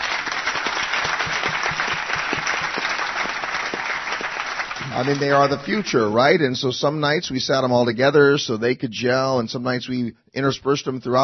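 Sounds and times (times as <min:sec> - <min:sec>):
audience applause: 0:00.0 - 0:06.4
speech: 0:05.0 - 0:11.2.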